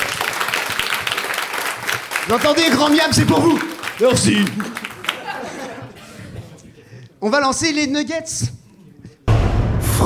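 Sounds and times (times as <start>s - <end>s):
audience applause: 0.0s - 5.9s
speech: 2.3s - 4.8s, 7.2s - 8.6s
laughter: 4.2s - 7.0s.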